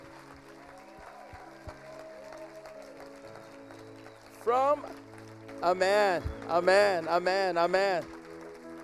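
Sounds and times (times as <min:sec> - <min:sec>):
audience clapping: 0:00.0 - 0:08.8
speech: 0:04.4 - 0:08.2.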